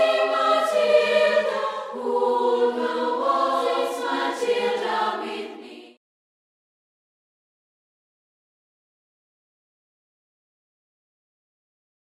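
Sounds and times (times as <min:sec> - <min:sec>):
a cappella vocals: 0:00.0 - 0:06.0.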